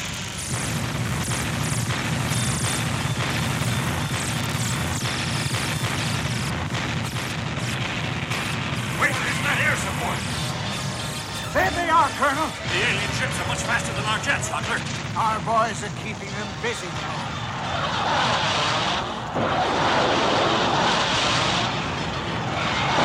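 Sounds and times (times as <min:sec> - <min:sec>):
barrage of gunfire aimed at alien spaceships: 0:00.0 - 0:23.0
speech: 0:12.3 - 0:17.4.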